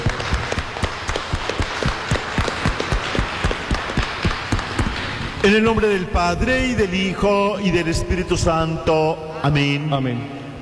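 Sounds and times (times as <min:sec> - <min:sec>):
audience applauding: 0:00.0 - 0:05.5
speech: 0:05.4 - 0:10.4.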